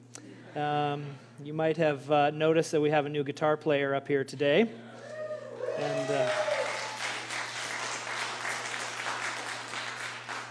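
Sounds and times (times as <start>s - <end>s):
speech: 0.5s - 4.9s
audience applause for a new guitar player at a church service: 5.6s - 10.4s.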